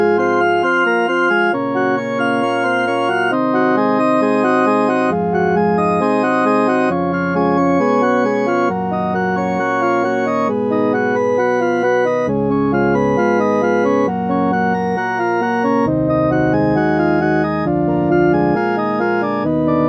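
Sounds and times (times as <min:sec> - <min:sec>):
prelude in C sharp major in temperament IV: 0:00.0 - 0:19.8.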